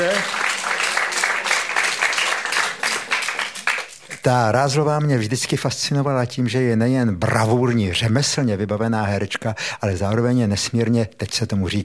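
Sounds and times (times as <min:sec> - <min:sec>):
audience applause: 0:00.0 - 0:04.2
speech: 0:04.2 - 0:11.8.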